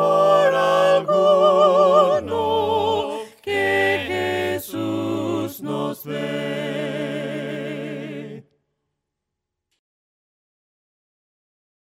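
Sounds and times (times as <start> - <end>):
voices singing a cappella hymns: 0.0 - 8.6.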